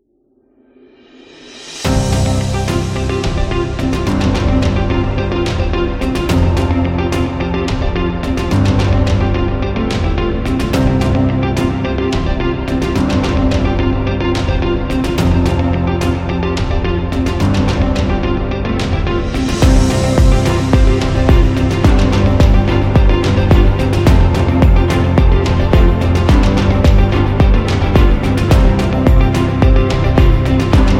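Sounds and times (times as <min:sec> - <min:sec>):
motivational music: 0:01.3 - 0:30.9.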